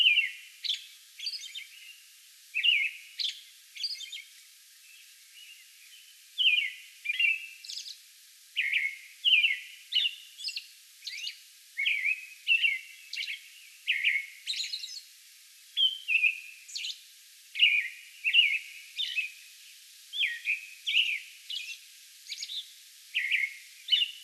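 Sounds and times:
American robin singing: 0:00.0 - 0:02.0, 0:02.6 - 0:08.0, 0:08.6 - 0:15.1, 0:15.8 - 0:17.0, 0:17.6 - 0:19.4, 0:20.1 - 0:24.2.

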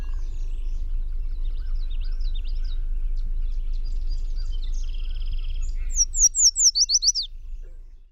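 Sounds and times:
Yellow Warbler singing: 0:00.0 - 0:08.1.

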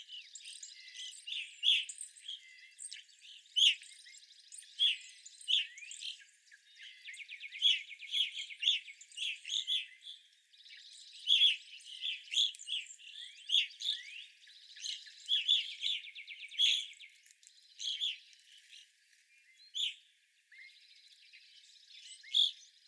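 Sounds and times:
Evening grosbeak chirping: 0:00.0 - 0:22.8.

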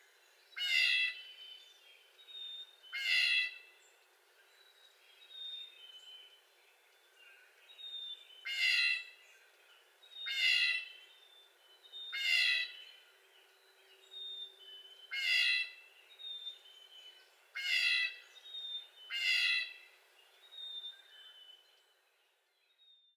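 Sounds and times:
Blue Jay making whiny jay calls: 0:02.9 - 0:03.7, 0:08.4 - 0:09.2, 0:10.2 - 0:11.0, 0:12.1 - 0:12.8, 0:15.0 - 0:15.8, 0:17.6 - 0:18.2, 0:19.1 - 0:19.9.

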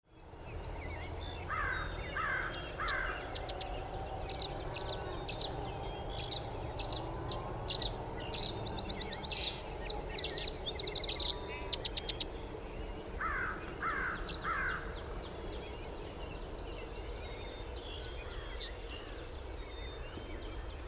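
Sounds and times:
sedge wren song: 0:00.1 - 0:20.8.

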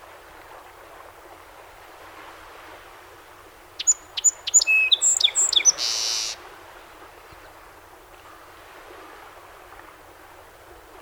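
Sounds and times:
song sparrow singing: 0:03.8 - 0:06.4.

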